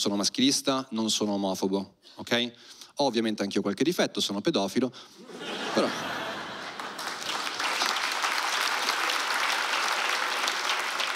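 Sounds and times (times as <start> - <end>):
speech: 0.0 - 6.2
laughter: 5.2 - 7.6
audience applauding: 6.2 - 11.1.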